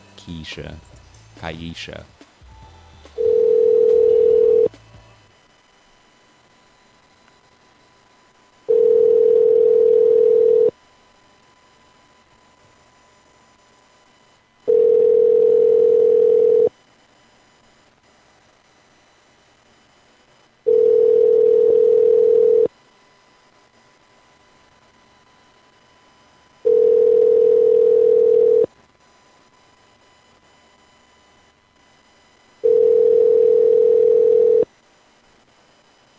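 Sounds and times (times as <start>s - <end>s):
speech: 0.2s - 2.2s
phone ringback tone while placing a call: 3.2s - 4.7s, 8.7s - 10.7s, 14.7s - 16.7s, 20.7s - 22.7s, 26.6s - 28.7s, 32.6s - 34.7s.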